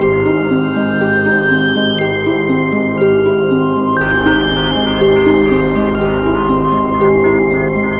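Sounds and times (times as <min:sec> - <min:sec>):
background music: 0:00.0 - 0:07.9.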